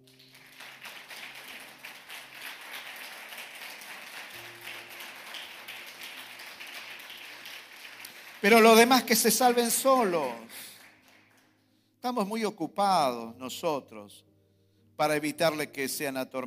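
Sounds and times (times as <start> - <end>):
audience applause: 0.0 - 11.5
speech: 8.4 - 10.7, 12.0 - 14.3, 15.0 - 16.4.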